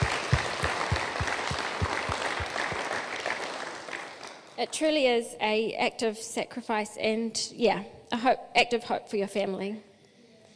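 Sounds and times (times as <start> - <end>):
church audience round of applause: 0.0 - 4.6
speech: 4.6 - 9.9.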